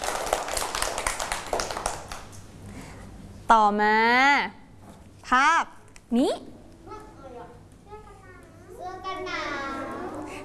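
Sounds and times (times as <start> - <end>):
hand clapping applause: 0.0 - 2.4
speech: 3.5 - 4.6, 5.3 - 6.5.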